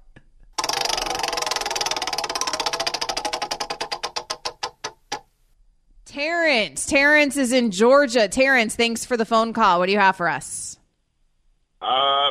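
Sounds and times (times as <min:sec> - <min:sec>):
spinning wheel ticking: 0:00.6 - 0:05.2
speech: 0:06.2 - 0:10.6.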